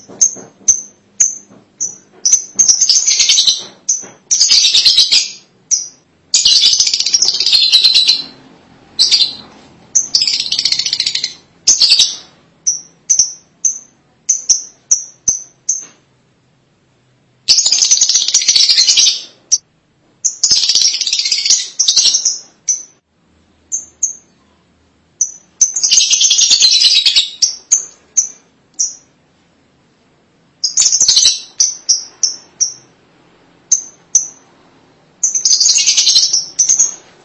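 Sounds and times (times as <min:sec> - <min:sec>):
lovebird calling: 0:00.0 - 0:15.9, 0:17.5 - 0:19.6, 0:20.2 - 0:23.0, 0:25.2 - 0:29.1, 0:30.6 - 0:32.9, 0:35.2 - 0:37.2.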